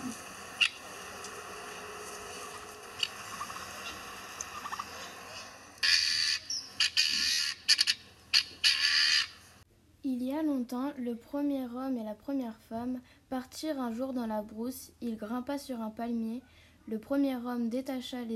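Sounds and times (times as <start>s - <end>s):
helmeted guineafowl cackling: 0.6s - 0.8s, 3.0s - 5.1s, 5.8s - 9.4s
speech: 10.7s - 18.3s.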